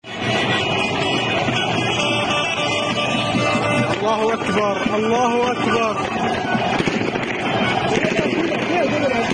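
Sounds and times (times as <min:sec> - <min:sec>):
car horns in Syria: 0:00.0 - 0:09.3
celebrating crowd chanting in Syria after the fall of the Assad regime: 0:00.0 - 0:09.3
speech: 0:04.1 - 0:06.9
gunfire in Syria: 0:06.4 - 0:09.3.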